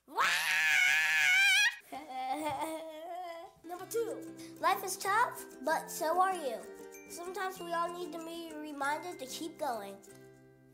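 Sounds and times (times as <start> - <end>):
person screaming: 0.0 - 1.8
speech: 3.9 - 10.2.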